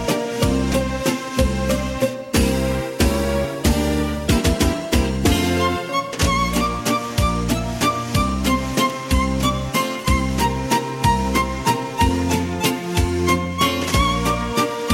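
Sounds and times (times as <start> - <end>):
instrumental Viennese waltz karaoke backing track: 0.0 - 14.9.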